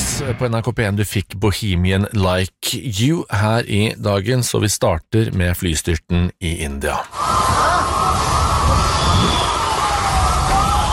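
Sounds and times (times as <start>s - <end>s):
speech: 0.2s - 7.6s
crowd noise rumble: 7.1s - 10.9s
fire brigade sirens wailing at plane crash site: 7.1s - 10.9s
shouts: 7.1s - 10.9s.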